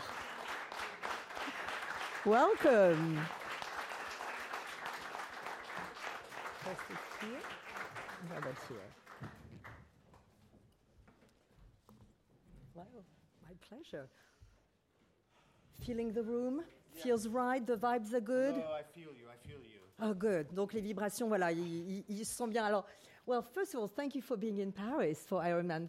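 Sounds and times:
press conference audience applause: 0.0s - 9.9s
speech: 2.2s - 3.4s, 6.7s - 7.6s, 8.2s - 9.4s, 12.9s - 14.4s, 15.8s - 25.8s.

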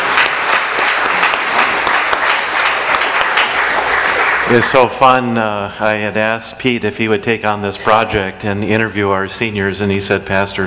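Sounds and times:
crowd applause: 0.0s - 4.9s
speech: 4.5s - 10.6s.

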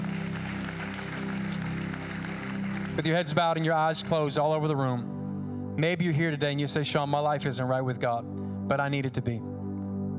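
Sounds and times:
audience clapping hands: 0.0s - 4.4s
speech: 3.0s - 5.2s, 5.8s - 9.5s.

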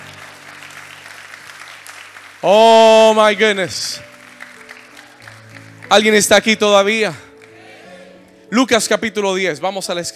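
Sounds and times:
audience applauding loudly: 0.0s - 8.0s
speech: 2.4s - 4.1s, 5.9s - 7.2s, 8.5s - 10.1s.

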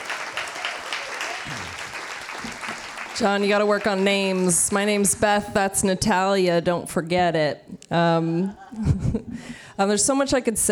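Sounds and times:
audience clapping: 0.0s - 5.2s
speech: 3.2s - 9.0s, 9.8s - 10.7s.

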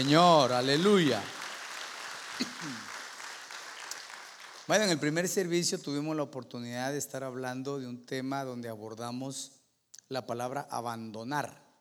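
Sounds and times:
speech: 0.0s - 1.4s, 2.4s - 2.9s, 4.7s - 11.6s
audience applause: 0.0s - 5.1s.

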